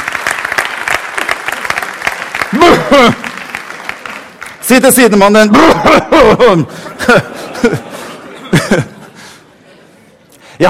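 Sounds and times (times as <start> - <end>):
people cheering: 0.0 - 4.4
audience clapping: 0.0 - 5.2
speech: 2.5 - 3.2, 4.7 - 7.9, 8.7 - 8.9
laughter: 2.5 - 3.4, 5.5 - 10.1.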